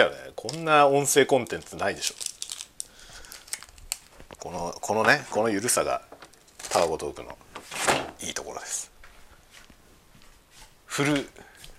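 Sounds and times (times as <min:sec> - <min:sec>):
speech: 0:00.0 - 0:02.3, 0:04.4 - 0:06.1, 0:06.8 - 0:08.9, 0:11.0 - 0:11.5
crinkly plastic garbage bag rustling as fitted into trash bin: 0:00.5 - 0:08.2.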